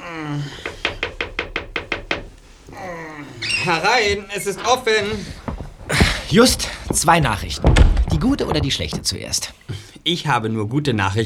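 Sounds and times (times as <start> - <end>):
knocking on a door: 0.6 - 2.8, 4.0 - 9.4
speech: 3.6 - 11.2.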